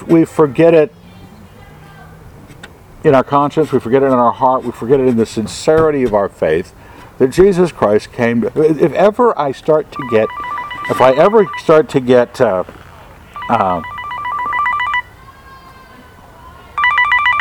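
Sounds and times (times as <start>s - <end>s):
speech: 0.1s - 1.0s, 3.0s - 12.8s, 13.5s - 13.9s
mobile phone ringing with an electronic ringtone: 10.0s - 11.9s, 13.4s - 15.1s, 16.8s - 17.3s.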